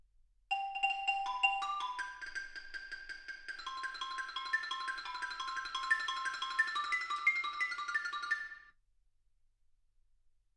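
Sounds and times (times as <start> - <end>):
xylophone: 0.5 - 8.7.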